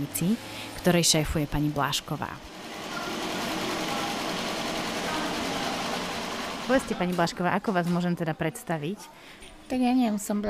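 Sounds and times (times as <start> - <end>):
speech: 0.0 - 2.6, 6.7 - 10.4
knitting machines running inside a knitting workshop: 0.0 - 8.1.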